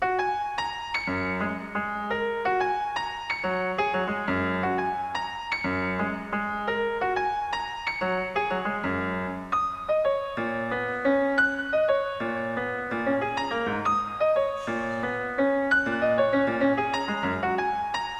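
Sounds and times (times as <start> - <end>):
piano in Smith Hall: 0.0 - 18.1.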